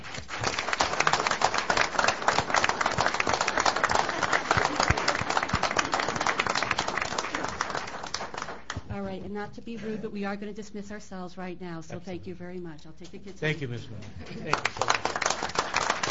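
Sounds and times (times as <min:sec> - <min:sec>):
audience applause: 0:00.0 - 0:08.8, 0:14.3 - 0:16.0
speech: 0:09.4 - 0:15.0.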